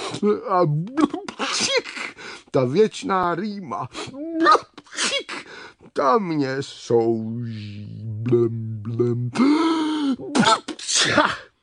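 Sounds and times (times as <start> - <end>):
speech: 0.2 - 11.5
loud sneeze: 1.3 - 2.0, 4.5 - 5.5, 10.3 - 11.6.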